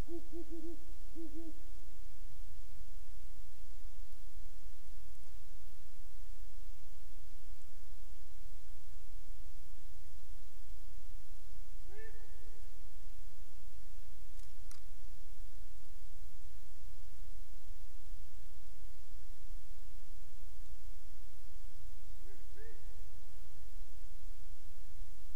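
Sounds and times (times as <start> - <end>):
owl hooting: 0.0 - 1.8, 11.9 - 12.6, 22.2 - 23.0
faint hiss: 0.0 - 25.3.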